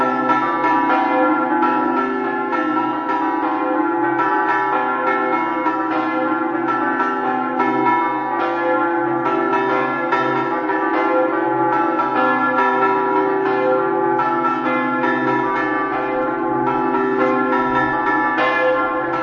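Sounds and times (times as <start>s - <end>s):
bells ringing: 0.0s - 19.2s.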